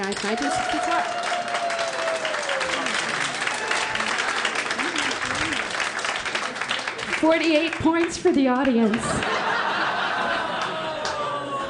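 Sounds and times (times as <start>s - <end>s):
speech: 0.0s - 1.5s, 7.2s - 9.5s
crowd applause: 0.0s - 11.6s
rising whoops: 0.4s - 5.7s, 10.6s - 11.6s
laughter: 2.6s - 6.9s, 8.8s - 11.6s.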